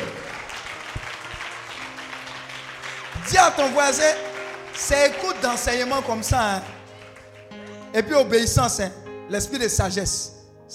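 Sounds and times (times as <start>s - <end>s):
crowd applauding: 0.0s - 8.0s
speech: 3.3s - 6.8s, 7.9s - 10.7s.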